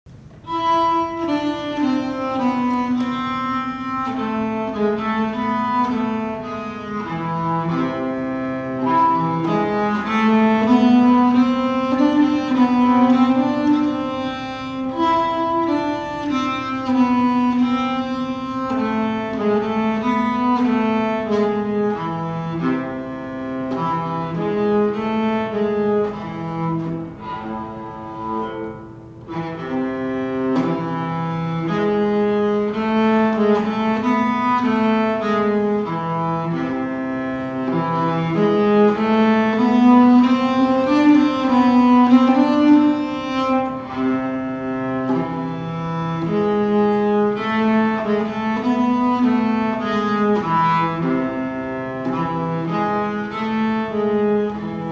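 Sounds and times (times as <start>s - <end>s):
slow harmony: 0.1s - 54.8s.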